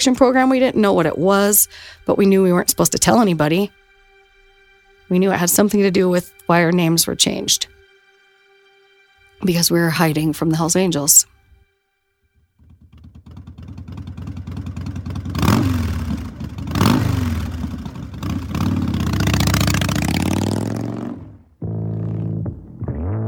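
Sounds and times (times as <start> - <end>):
speech: 0.0 - 3.8, 5.1 - 7.8, 9.4 - 11.4
motorcycle engine revving: 12.6 - 23.1.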